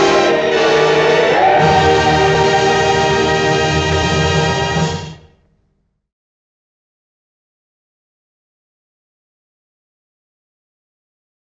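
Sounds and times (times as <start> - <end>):
ballet music: 0.0 - 5.2.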